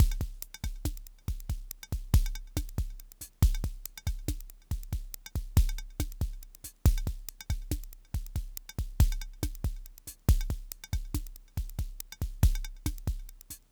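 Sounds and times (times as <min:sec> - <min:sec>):
drum loop: 0:00.0 - 0:13.6.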